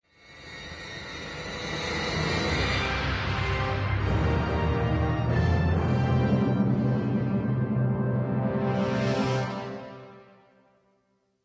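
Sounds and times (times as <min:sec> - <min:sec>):
intro music: 0:02.2 - 0:10.2.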